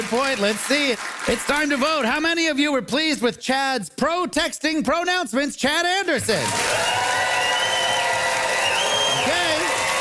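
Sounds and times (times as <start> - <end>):
speech: 0.1 - 7.2
crowd cheering: 6.4 - 9.9
rising wavering whoops: 6.6 - 9.9.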